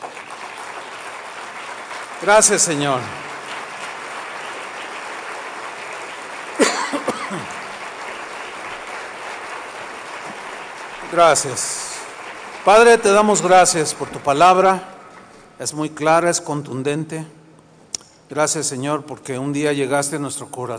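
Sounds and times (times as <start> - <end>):
audience applause: 0.0 - 15.8
speech: 2.2 - 3.3, 11.2 - 11.9, 12.6 - 14.9, 15.6 - 17.4, 18.3 - 20.7.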